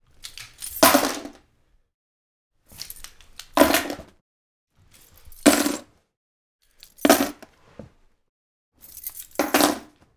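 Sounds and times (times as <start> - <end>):
keys dropping on wood table: 0.2 - 1.4, 2.8 - 4.1, 5.0 - 5.8, 6.7 - 8.0, 8.8 - 10.0.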